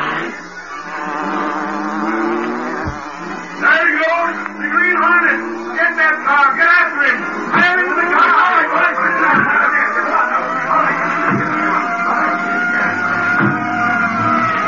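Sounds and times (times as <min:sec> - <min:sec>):
car engine humming: 0:00.0 - 0:14.6.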